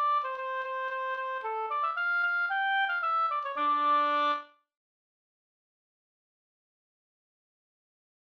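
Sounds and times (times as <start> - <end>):
polska folk dance tune in D minor: 0.0 - 4.5.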